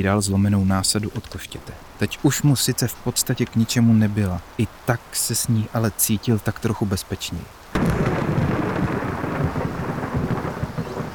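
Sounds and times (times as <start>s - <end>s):
speech: 0.0s - 8.2s
mighty thunder: 7.8s - 11.1s.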